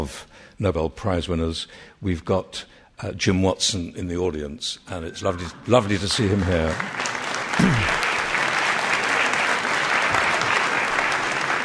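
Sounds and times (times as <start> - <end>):
speech: 0.0 - 7.8
audience applause: 5.3 - 11.6.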